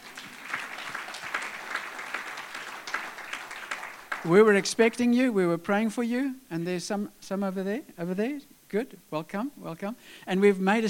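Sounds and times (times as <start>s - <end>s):
audience round of applause: 0.0s - 4.8s
speech: 4.2s - 10.8s.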